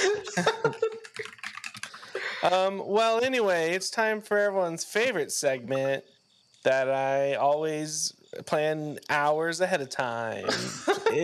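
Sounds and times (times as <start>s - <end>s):
laughter: 0.0s - 1.0s, 10.5s - 11.2s
speech: 0.4s - 0.6s, 2.5s - 11.2s
typing on a computer keyboard: 0.6s - 2.1s.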